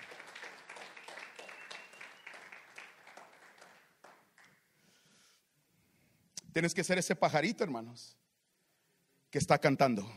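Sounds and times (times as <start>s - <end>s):
audience applause: 0.0s - 4.5s
speech: 6.6s - 8.2s, 9.3s - 10.1s.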